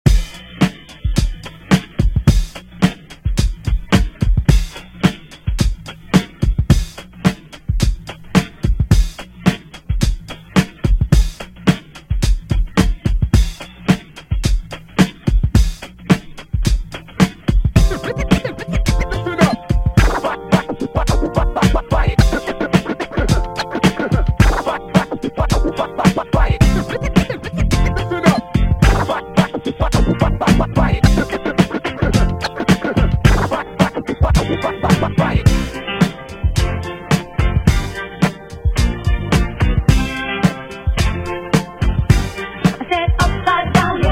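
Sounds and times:
funk beat at 108 BPM: 0.0s - 44.1s
record scratching: 17.8s - 36.3s.

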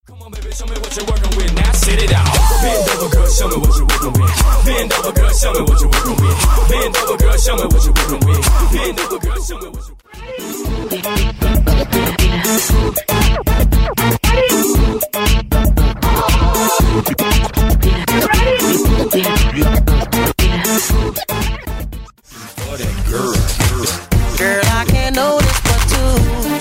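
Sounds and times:
throwback pop and RnB megamix: 0.1s - 21.8s, 22.4s - 26.5s.

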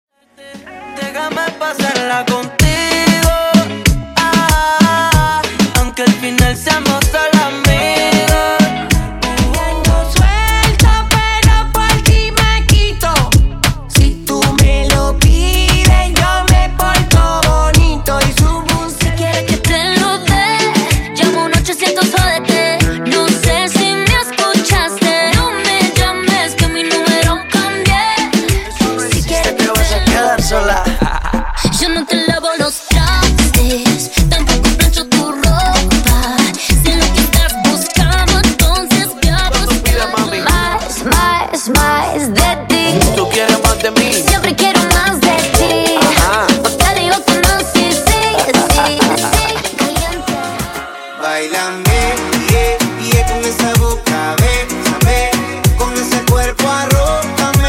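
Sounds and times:
party reggaeton megamix at 95 BPM: 0.2s - 57.6s
laughter: 30.7s - 31.6s, 45.3s - 46.8s, 47.8s - 50.5s.

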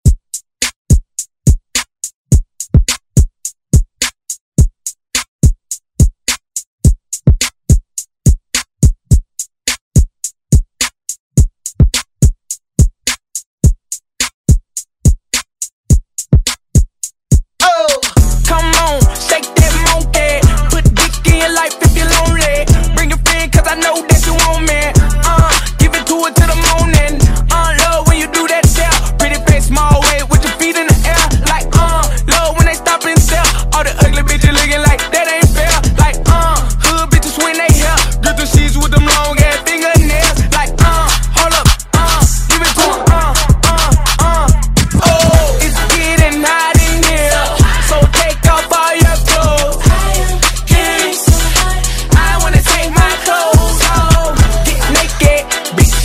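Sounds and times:
hip hop beat: 0.0s - 56.0s.

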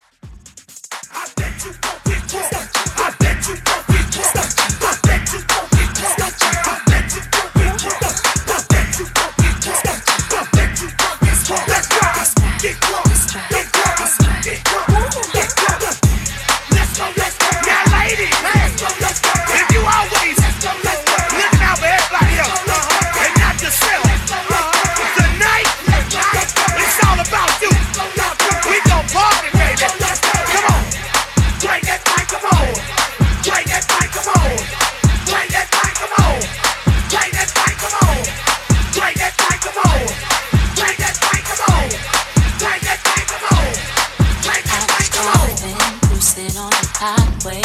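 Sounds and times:
2000s pop R&B dance music at 131 BPM: 0.2s - 47.6s.

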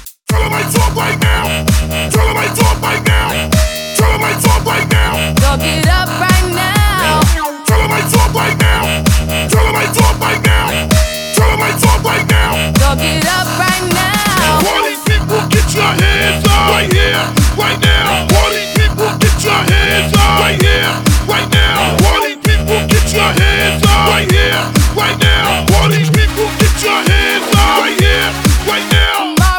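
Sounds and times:
lead synth mix: 0.3s - 29.4s.

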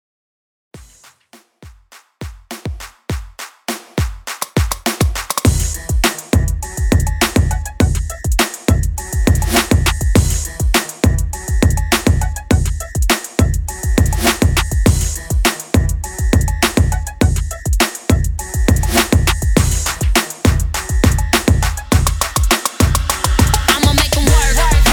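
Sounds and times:
Redrum drum machine beat: 0.8s - 24.9s.

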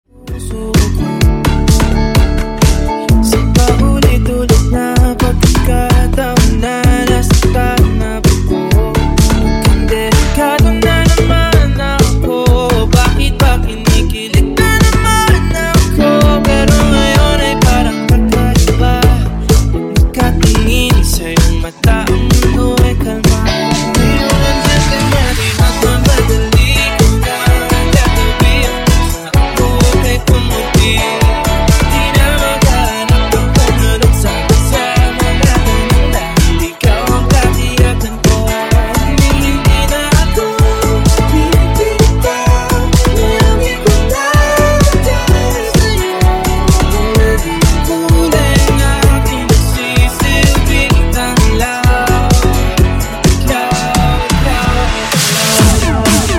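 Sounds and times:
funk music: 0.1s - 56.3s.

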